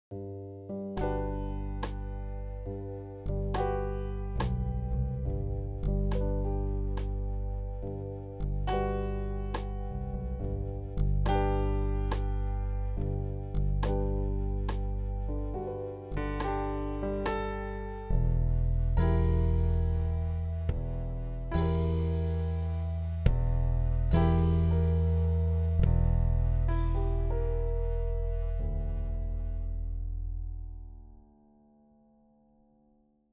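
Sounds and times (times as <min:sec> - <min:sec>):
piano: 0:00.1 - 0:32.8.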